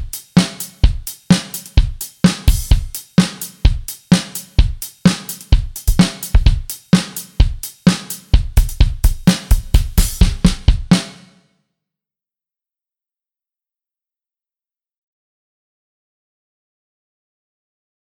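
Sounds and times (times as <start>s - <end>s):
drum track: 0.0s - 11.4s.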